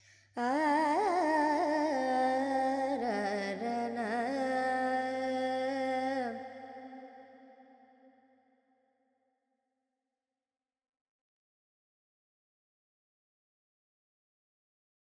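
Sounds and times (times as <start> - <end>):
Carnatic female vocal alap in Lydian mode with effects: 0.0 - 7.7.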